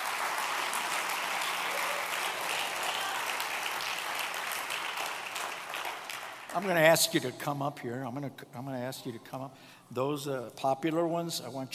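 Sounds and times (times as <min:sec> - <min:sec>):
audience applause: 0:00.0 - 0:06.8
speech: 0:06.6 - 0:11.7.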